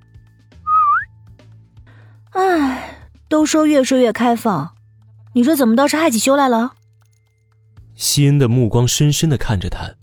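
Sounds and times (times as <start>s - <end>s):
flirtatious whistle: 0.6s - 1.1s
speech: 3.4s - 6.8s, 8.0s - 10.0s.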